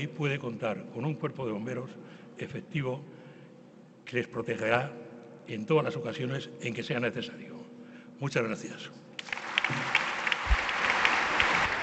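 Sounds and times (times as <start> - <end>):
speech: 0.0 - 3.2, 4.1 - 7.5, 8.2 - 9.9
crowd applauding after a speech: 9.2 - 11.8.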